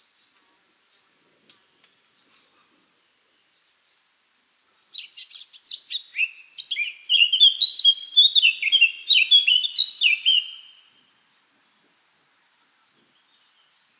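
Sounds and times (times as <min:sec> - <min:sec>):
Eurasian blackcap warbling and whistling song: 0:06.1 - 0:10.7.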